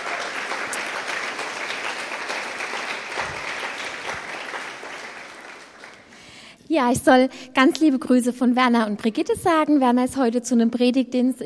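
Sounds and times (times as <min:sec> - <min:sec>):
audience applause: 0:00.0 - 0:06.2
speech: 0:06.7 - 0:11.4.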